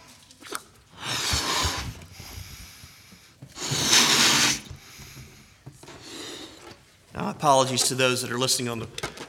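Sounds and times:
blowing up a balloon: 0:00.4 - 0:06.8
speech: 0:07.2 - 0:09.2.

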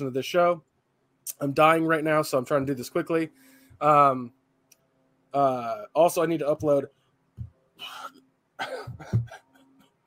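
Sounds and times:
speech: 0:00.0 - 0:00.7, 0:01.3 - 0:04.4, 0:05.3 - 0:07.0
coughing from a persistent tickle in the throat: 0:07.8 - 0:09.6.

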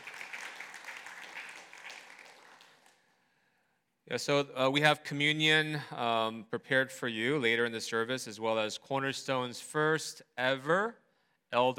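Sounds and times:
church congregation applause welcoming a visitor during a service: 0:00.0 - 0:03.1
speech: 0:04.1 - 0:11.7.

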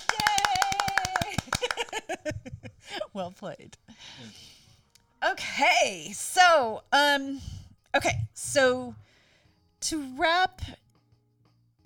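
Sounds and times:
one person clapping hands: 0:00.0 - 0:02.2
speech: 0:03.2 - 0:04.5, 0:05.2 - 0:09.0, 0:09.8 - 0:10.8.

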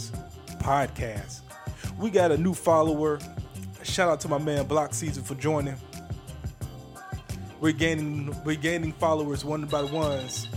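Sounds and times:
speech: 0:00.0 - 0:01.4, 0:02.0 - 0:05.9, 0:07.6 - 0:10.5
phone alarm ringtone: 0:09.6 - 0:10.5.

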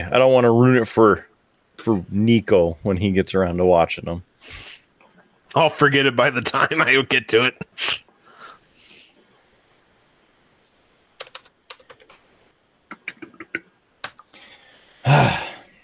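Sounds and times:
speech: 0:00.0 - 0:04.7, 0:05.5 - 0:08.0
typing on a computer keyboard: 0:11.2 - 0:12.2.

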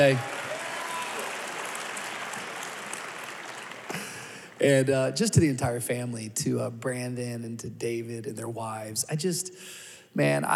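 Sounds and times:
speech: 0:00.0 - 0:00.3, 0:04.6 - 0:10.5
church congregation applauding and cheering for a pastor's birthday: 0:00.0 - 0:05.1.

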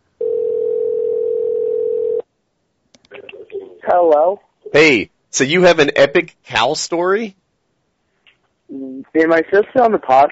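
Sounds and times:
telephone dial tone while placing a call: 0:00.2 - 0:02.2
speech: 0:03.9 - 0:07.4, 0:08.7 - 0:10.3.

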